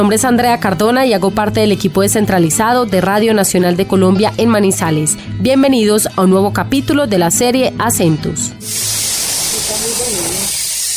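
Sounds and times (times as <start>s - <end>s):
speech: 0.0s - 9.1s
pressure cooker (pitadora) releasing steam: 8.6s - 10.9s.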